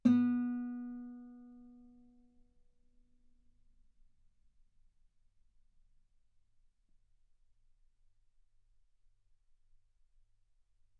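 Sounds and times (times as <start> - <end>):
guitar note B3: 0.0 - 1.8.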